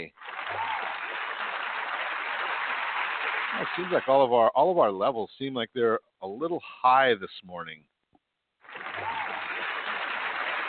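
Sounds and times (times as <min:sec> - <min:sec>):
applause sound effect: 0:00.0 - 0:04.3, 0:08.6 - 0:10.6
speech: 0:03.5 - 0:07.9.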